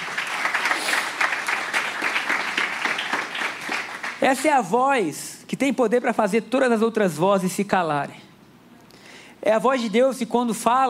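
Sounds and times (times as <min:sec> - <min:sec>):
audience applause: 0:00.0 - 0:04.2
speech: 0:04.2 - 0:08.2, 0:09.4 - 0:10.8.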